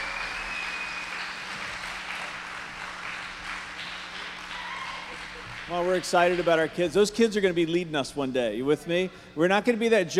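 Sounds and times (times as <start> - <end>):
faint high whistle: 0.0 - 1.4
crowd clapping and cheering: 0.0 - 6.8
speech: 5.7 - 10.1.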